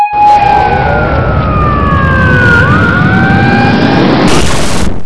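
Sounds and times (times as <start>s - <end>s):
blowout: 0.2s - 5.0s.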